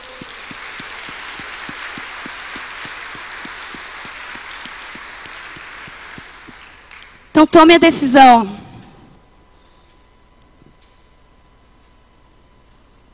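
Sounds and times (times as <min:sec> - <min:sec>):
audience applause: 0:00.0 - 0:07.2
speech: 0:07.4 - 0:08.6.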